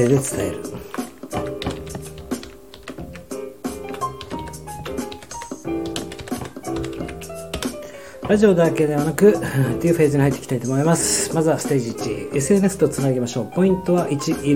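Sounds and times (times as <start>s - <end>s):
speech: 0.0s - 1.5s, 8.3s - 14.5s
typing on a computer keyboard: 0.9s - 3.2s, 3.8s - 7.8s.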